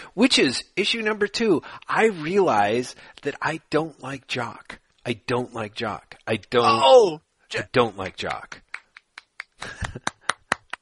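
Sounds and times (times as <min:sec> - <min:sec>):
speech: 0:00.2 - 0:08.6
hands clapping: 0:07.8 - 0:10.7.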